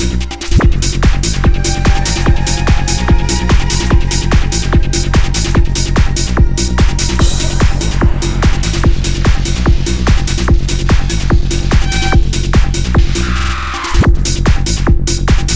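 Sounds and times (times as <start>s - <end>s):
tribal rhythm: 0.0s - 15.5s.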